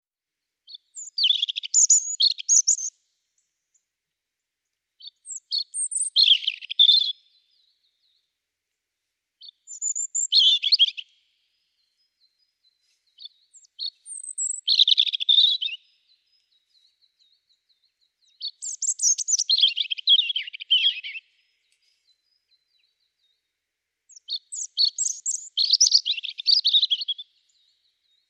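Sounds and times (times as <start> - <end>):
European robin song: 0.7 - 3.0, 5.0 - 7.6, 9.4 - 11.1, 11.7 - 23.4, 24.1 - 28.2.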